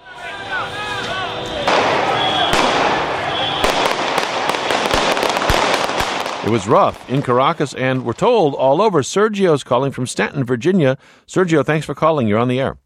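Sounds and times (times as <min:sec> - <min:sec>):
crowd noise at a street protest in Caracas, Venezuela: 0:00.0 - 0:08.5
sharp bangs at a street protest in Caracas, Venezuela: 0:00.6 - 0:08.6
speech: 0:06.5 - 0:12.8.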